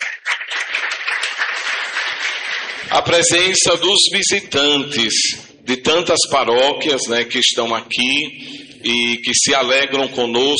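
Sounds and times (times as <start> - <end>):
audience at a church celebration applauding seminarians: 0.0 - 3.5
speech: 2.9 - 10.5.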